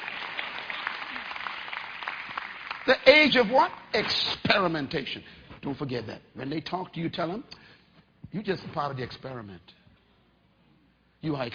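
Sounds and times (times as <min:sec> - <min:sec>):
scattered audience claps during a talk: 0:00.0 - 0:03.8
speech: 0:02.9 - 0:07.6, 0:08.3 - 0:09.8, 0:11.2 - 0:11.5.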